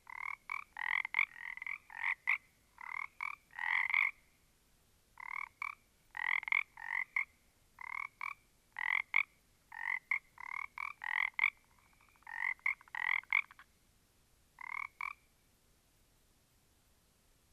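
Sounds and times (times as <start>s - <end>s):
small group of frogs: 0.1s - 4.2s, 5.2s - 13.7s, 14.6s - 15.3s.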